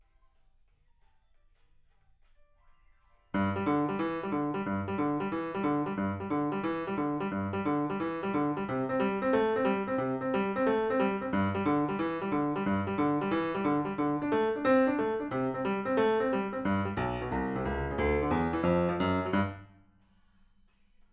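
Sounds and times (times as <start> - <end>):
piano: 3.2 - 19.9.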